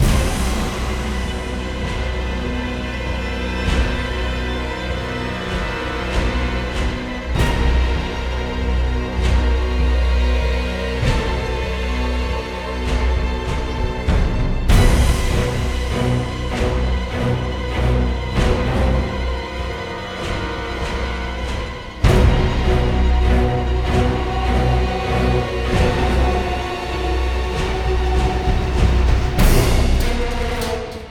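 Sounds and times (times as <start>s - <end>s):
boss fight stage action music: 0.0s - 31.0s.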